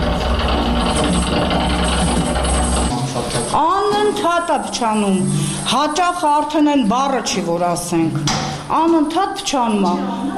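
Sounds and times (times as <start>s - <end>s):
worn-out elevator mechanism in Armenia creaking and clanking: 0.0s - 6.5s
speech: 4.5s - 10.2s.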